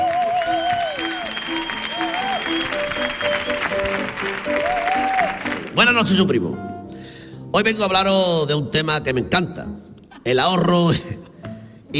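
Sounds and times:
audience applause: 0.0 - 5.9
speech: 5.8 - 6.8, 7.5 - 11.2.

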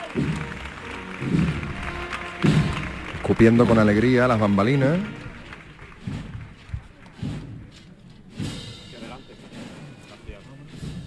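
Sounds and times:
crowd clapping: 0.0 - 7.8
heavy low thumps: 0.0 - 11.0
speech: 0.1 - 0.5, 3.3 - 5.2.

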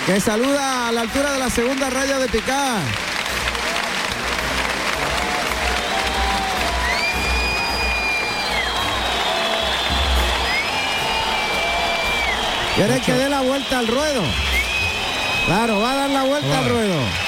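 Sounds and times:
speech: 0.0 - 3.1, 12.8 - 14.6, 15.4 - 17.2
bullring crowd ovation with applause and cheering for bullfighter El Juli: 0.0 - 17.2
rising-and-falling whistles in a bullring crowd: 5.8 - 17.2.

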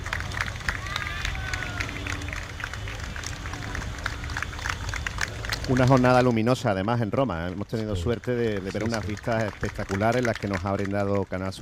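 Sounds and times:
low rumble: 0.0 - 6.4
street crowd applauding: 0.0 - 11.6
speech: 5.7 - 11.6.

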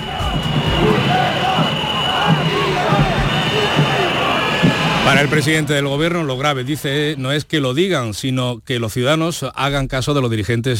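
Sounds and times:
crowd booing at military parade: 0.0 - 7.7
speech: 5.2 - 10.7.

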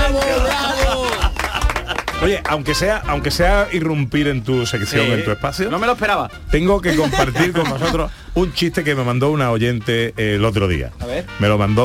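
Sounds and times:
colleagues applauding in the studio: 0.0 - 2.7
laughter: 0.4 - 2.1, 6.9 - 8.1
speech: 2.2 - 11.8.

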